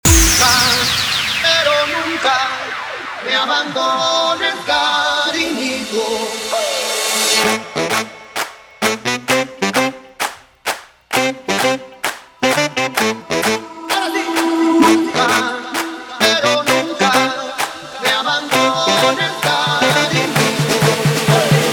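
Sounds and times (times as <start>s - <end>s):
guaracha remix music: 0.0s - 10.4s, 11.1s - 21.7s.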